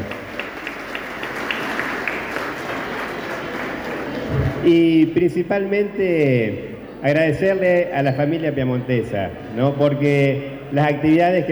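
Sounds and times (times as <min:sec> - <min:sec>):
audience applause: 0:00.0 - 0:04.6
speech: 0:04.6 - 0:11.5.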